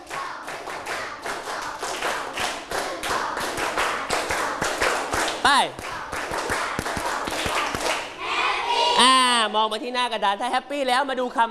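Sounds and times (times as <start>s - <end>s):
class clapping hands: 0.0s - 8.2s
speech: 5.5s - 5.8s, 9.0s - 11.4s.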